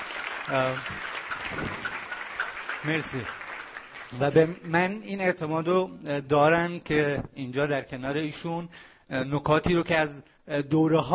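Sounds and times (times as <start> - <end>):
audience applause at a talk: 0.0 - 4.7
speech: 0.5 - 2.0, 2.8 - 3.4, 4.1 - 11.1.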